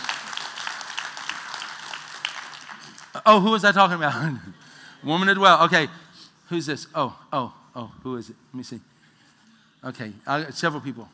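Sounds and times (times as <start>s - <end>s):
crowd applauding: 0.0s - 3.2s
speech: 3.2s - 8.9s, 9.8s - 11.1s.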